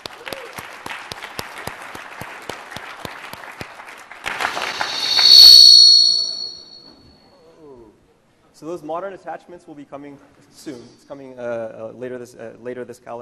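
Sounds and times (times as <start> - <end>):
audience applause: 0.0 - 4.5
shrill whistle: 4.3 - 7.0
speech: 8.6 - 13.2.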